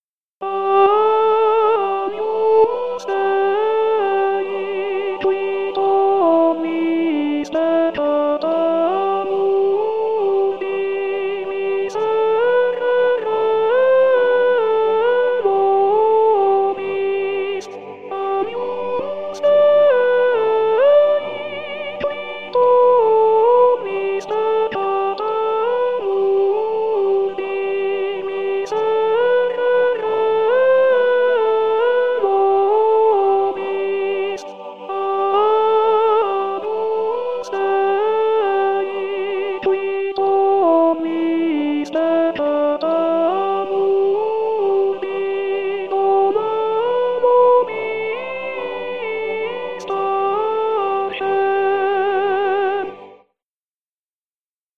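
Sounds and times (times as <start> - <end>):
choir singing a mass chant: 0.6 - 53.3.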